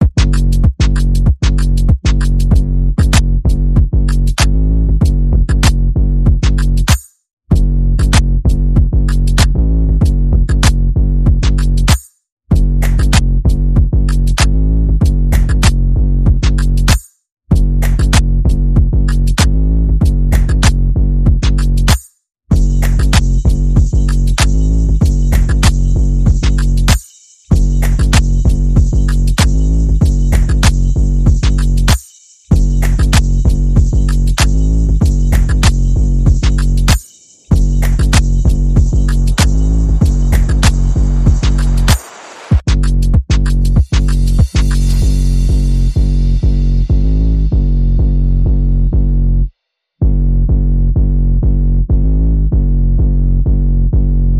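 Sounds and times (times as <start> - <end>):
bass: 0.0 - 42.0, 42.6 - 54.3
percussion: 0.0 - 49.2
sound effects: 34.4 - 42.7.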